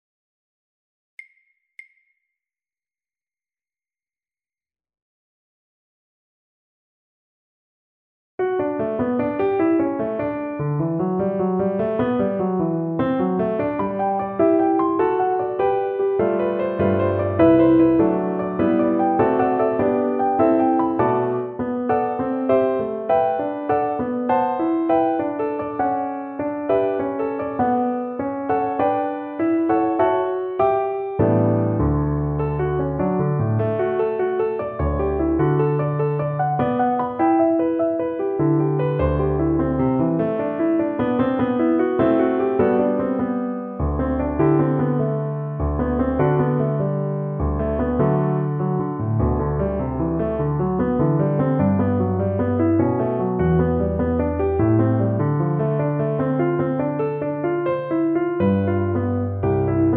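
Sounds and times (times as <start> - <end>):
piano: 8.4 - 59.9.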